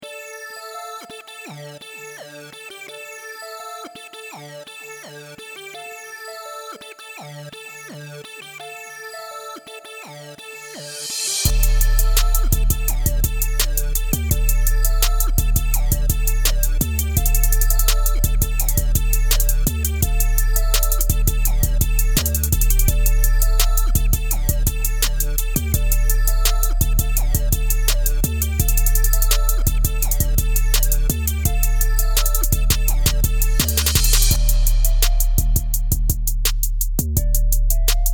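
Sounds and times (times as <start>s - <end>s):
chords: 11.4s - 38.1s.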